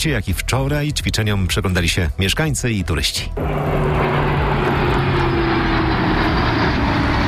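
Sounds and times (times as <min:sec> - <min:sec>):
speech: 0:00.0 - 0:04.4
military fighter jets passing overhead: 0:03.3 - 0:07.2.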